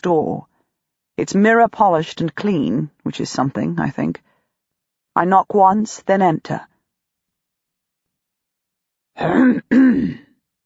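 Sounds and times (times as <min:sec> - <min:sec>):
speech: 0:00.0 - 0:00.5, 0:01.2 - 0:04.3, 0:05.2 - 0:06.7, 0:09.2 - 0:10.2
man clearing his throat: 0:09.2 - 0:10.3.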